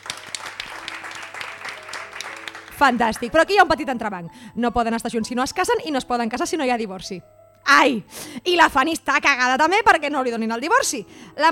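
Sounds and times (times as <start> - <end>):
applause: 0.0 - 3.5
speech: 2.8 - 11.5.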